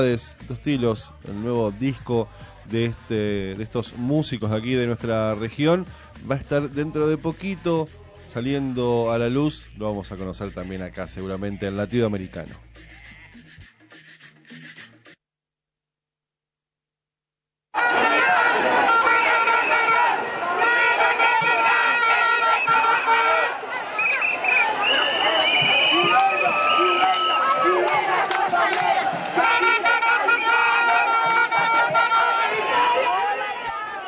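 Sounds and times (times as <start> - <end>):
speech: 0.0 - 12.9
crowd at a teachers' protest march in Colombia: 17.8 - 34.0.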